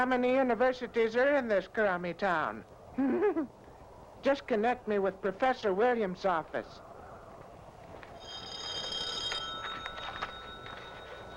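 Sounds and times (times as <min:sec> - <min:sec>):
speech: 0:00.0 - 0:03.6, 0:04.2 - 0:06.9
telephone ringing: 0:08.2 - 0:11.3.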